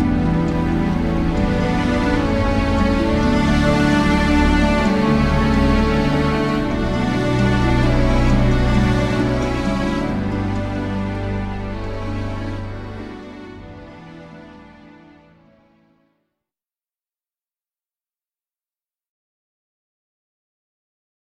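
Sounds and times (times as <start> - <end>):
instrumental music: 0.0 - 16.1.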